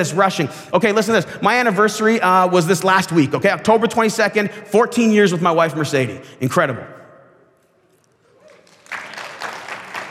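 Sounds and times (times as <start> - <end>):
speech: 0.0 - 7.0
audience clapping: 8.4 - 10.0.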